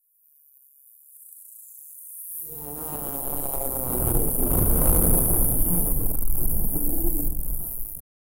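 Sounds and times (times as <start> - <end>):
insect exploding: 3.2 - 8.0.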